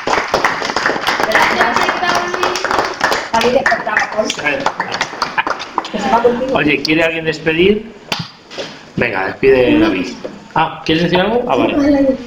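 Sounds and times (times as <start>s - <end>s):
applause: 0.0s - 5.9s
speech: 3.4s - 8.0s, 9.0s - 12.2s.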